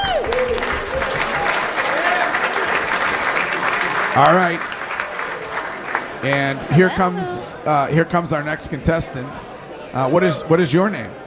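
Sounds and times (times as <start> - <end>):
faint whoops and voices: 0.0 - 2.3
audience applause: 0.0 - 7.6
speech: 4.2 - 4.7, 6.2 - 11.2.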